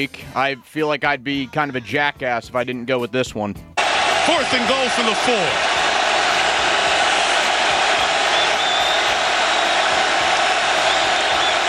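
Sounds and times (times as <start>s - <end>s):
speech: 0.0s - 5.9s
stadium crowd cheering: 3.8s - 11.6s.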